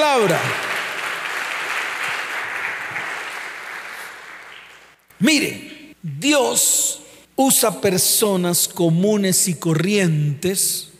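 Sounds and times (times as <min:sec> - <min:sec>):
speech: 0:00.0 - 0:00.7, 0:05.2 - 0:10.9
applause: 0:00.0 - 0:05.1.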